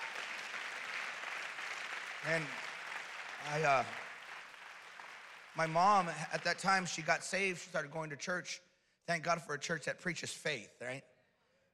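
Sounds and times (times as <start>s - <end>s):
audience clapping: 0.0s - 7.6s
speech: 2.2s - 2.7s, 3.4s - 4.0s, 5.6s - 11.1s.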